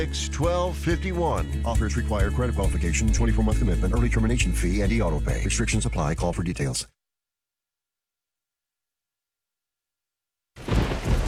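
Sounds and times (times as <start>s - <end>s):
speech: 0.0s - 7.0s
thunderstorm with pouring rain: 10.6s - 11.2s.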